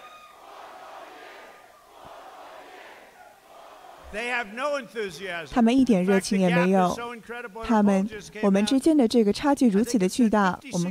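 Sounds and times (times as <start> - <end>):
large crowd chanting a slogan in unison: 0.0 - 4.6
speech: 4.1 - 10.8.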